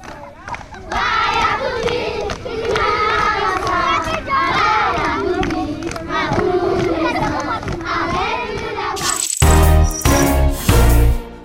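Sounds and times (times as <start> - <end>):
crowd of children shouting and chattering in an African village: 0.0 - 9.1
brief tonal sound: 9.0 - 11.1.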